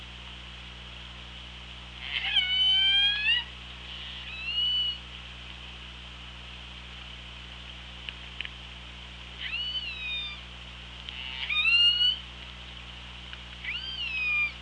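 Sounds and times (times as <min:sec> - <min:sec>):
killer whale calls: 0:02.0 - 0:05.0, 0:11.1 - 0:12.2, 0:13.6 - 0:14.6.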